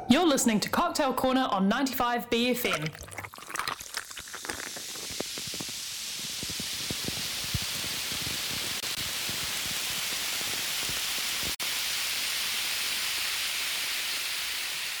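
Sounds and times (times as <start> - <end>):
speech: 0.1 - 3.1
fizzy drink fizzing: 2.6 - 14.9.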